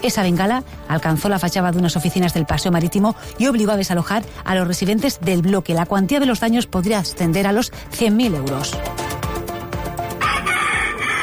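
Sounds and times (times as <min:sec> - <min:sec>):
speech: 0:00.0 - 0:09.0
fighting roosters crowing: 0:10.1 - 0:11.2.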